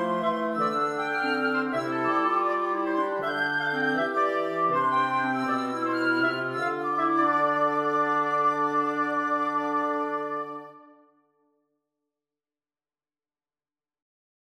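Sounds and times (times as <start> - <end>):
woodwind quartet playing: 0.0 - 11.0.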